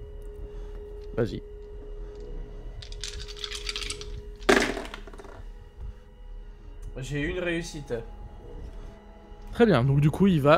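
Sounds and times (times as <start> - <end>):
speech: 1.2 - 1.5, 7.0 - 8.2, 9.6 - 10.5
dice being rolled: 3.0 - 5.4.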